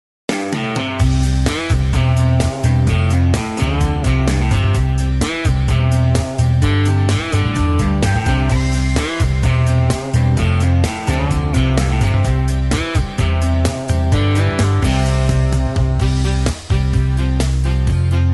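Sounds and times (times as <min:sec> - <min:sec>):
square dance music with leads: 0:00.5 - 0:18.3.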